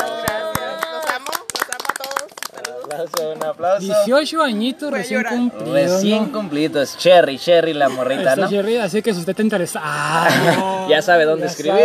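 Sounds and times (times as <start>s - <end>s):
scattered hand claps: 0.0s - 3.6s
lively overlapping voices cheering and chattering: 0.0s - 11.8s
speech: 2.9s - 11.8s
laughter: 7.8s - 8.9s, 9.8s - 10.9s.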